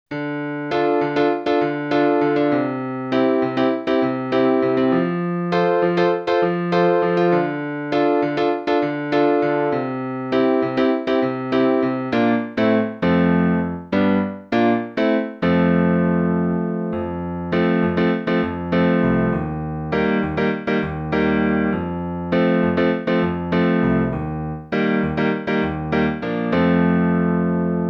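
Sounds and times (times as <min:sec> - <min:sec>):
piano piece: 0:00.1 - 0:27.8.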